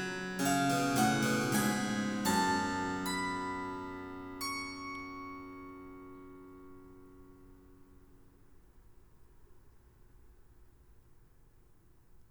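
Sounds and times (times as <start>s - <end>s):
harpsichord canon: 0.0s - 7.7s.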